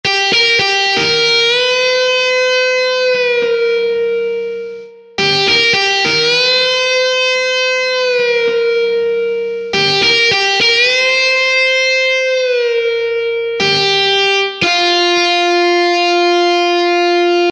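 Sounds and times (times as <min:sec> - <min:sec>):
guitar: 0:00.0 - 0:17.5.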